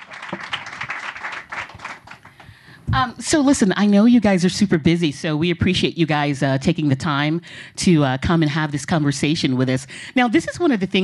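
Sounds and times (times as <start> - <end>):
audience applause for a Broadway dancer and choreographer: 0.0 - 2.4
speech: 2.9 - 11.0.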